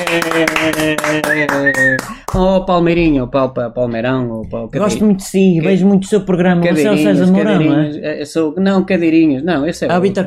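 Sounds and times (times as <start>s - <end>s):
television studio audience clapping in unison: 0.0s - 2.5s
speech: 0.1s - 10.2s.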